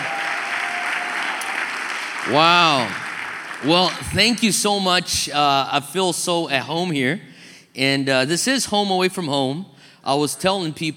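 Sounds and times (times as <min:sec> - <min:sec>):
audience applause: 0:00.0 - 0:04.0
speech: 0:02.2 - 0:03.0, 0:03.6 - 0:10.9.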